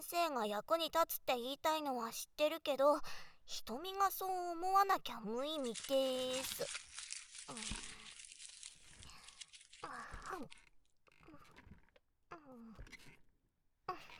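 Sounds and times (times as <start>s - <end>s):
speech: 0.0s - 6.9s, 7.5s - 8.0s, 9.8s - 10.6s
chocolate wrapper crinkling and tearing: 5.1s - 10.7s.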